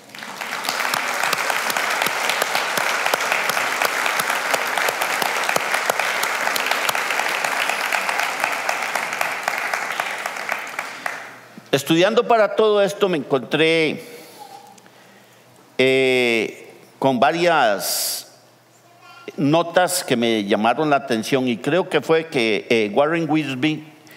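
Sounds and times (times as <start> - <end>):
applause: 0.0 - 11.5
speech: 11.8 - 14.1, 15.8 - 16.0, 17.0 - 18.0, 19.3 - 23.9.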